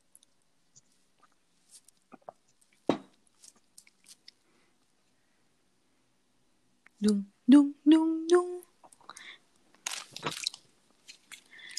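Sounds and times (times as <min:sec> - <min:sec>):
chewing: 0:00.1 - 0:04.4, 0:09.9 - 0:11.7
crunching bites into a green Nextar Coconut Delight biscuit: 0:01.2 - 0:04.4, 0:09.7 - 0:11.7
speech: 0:07.0 - 0:08.4.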